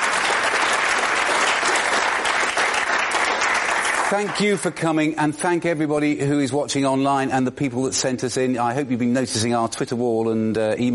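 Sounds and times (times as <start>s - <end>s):
audience applause: 0.0s - 4.8s
speech: 4.1s - 10.9s.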